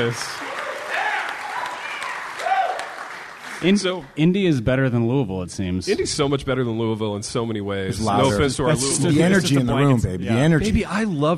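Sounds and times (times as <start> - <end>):
speech: 0.0 - 0.4, 3.6 - 11.3
live audience clapping: 0.0 - 4.2
whoops and cheering voices: 0.4 - 3.1.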